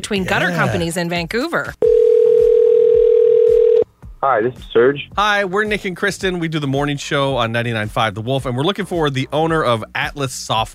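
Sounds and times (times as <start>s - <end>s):
speech: 0.0s - 1.9s, 4.2s - 10.7s
telephone dial tone: 1.8s - 3.8s.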